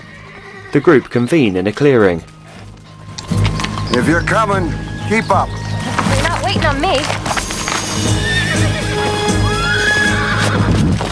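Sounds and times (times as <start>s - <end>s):
horse neighing: 0.0s - 1.2s, 7.9s - 10.9s
hooves on track: 0.0s - 11.1s
speech: 0.7s - 2.3s, 4.0s - 5.6s, 6.5s - 7.2s, 8.0s - 8.3s.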